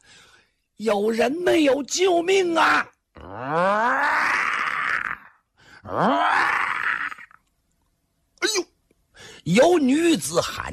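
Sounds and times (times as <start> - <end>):
speech: 0.8 - 4.4, 5.9 - 6.6, 9.4 - 10.7
storyteller imitating a tiger's roar: 3.1 - 7.4.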